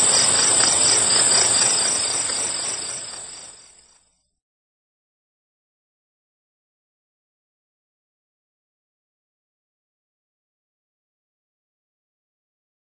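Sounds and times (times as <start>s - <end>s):
grasshopper stridulation chorus: 0.0s - 4.1s.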